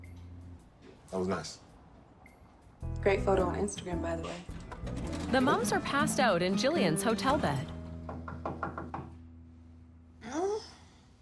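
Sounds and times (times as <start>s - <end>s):
speech: 1.1s - 1.7s, 3.0s - 7.8s
knocking on a hotel room door: 8.0s - 9.2s.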